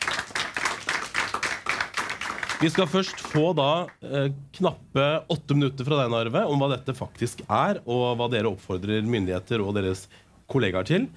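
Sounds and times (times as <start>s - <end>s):
audience applause: 0.0s - 3.5s
speech: 2.6s - 11.1s.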